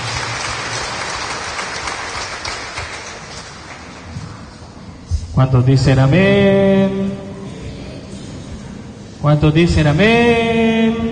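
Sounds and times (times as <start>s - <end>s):
audience clapping hands: 0.0s - 4.5s
speech: 5.4s - 7.3s, 9.2s - 10.9s.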